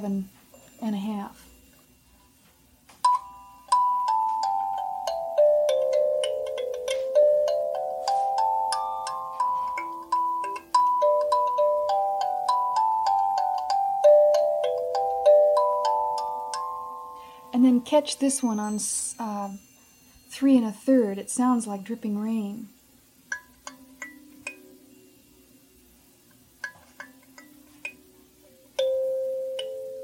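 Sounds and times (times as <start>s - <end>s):
speech: 0.0s - 1.5s, 17.9s - 19.7s, 20.4s - 22.8s
slow gentle melody of plucked kalimba notes: 3.0s - 20.1s, 23.3s - 25.5s, 26.6s - 30.0s.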